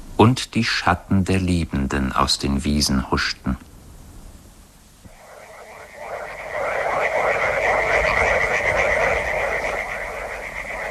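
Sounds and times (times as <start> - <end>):
speech: 0.2 - 3.7
chorus of frogs croaking in river backwaters: 5.1 - 10.8.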